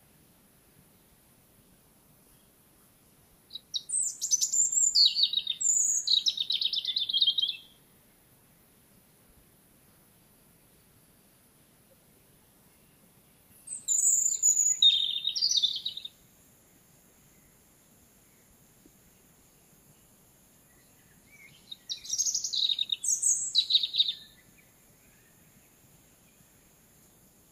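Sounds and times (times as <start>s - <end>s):
European robin singing: 3.5s - 7.8s, 12.7s - 16.2s, 17.2s - 27.4s.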